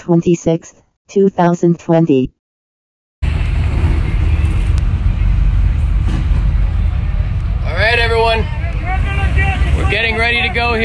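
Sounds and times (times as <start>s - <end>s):
speech: 0.1s - 2.4s, 9.9s - 10.8s
several vehicle engines revving together: 3.2s - 10.8s.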